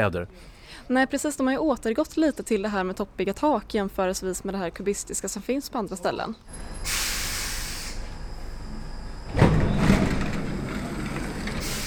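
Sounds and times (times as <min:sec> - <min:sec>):
speech: 0:00.0 - 0:07.2
inside a subway train: 0:06.4 - 0:11.8.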